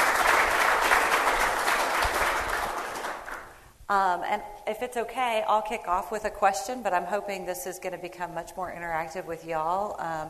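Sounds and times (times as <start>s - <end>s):
audience applause after a panel presentation: 0.0s - 3.6s
speech: 3.9s - 10.2s.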